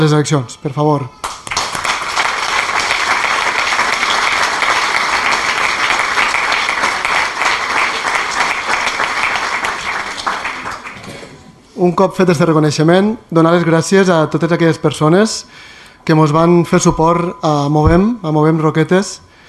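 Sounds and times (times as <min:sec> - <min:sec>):
speech: 0:00.0 - 0:01.4, 0:11.8 - 0:19.3
audience applause: 0:01.4 - 0:11.0.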